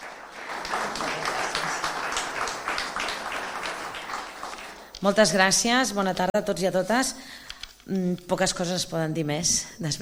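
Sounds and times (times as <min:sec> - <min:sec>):
audience applause: 0:00.0 - 0:05.0
speech: 0:05.0 - 0:09.9.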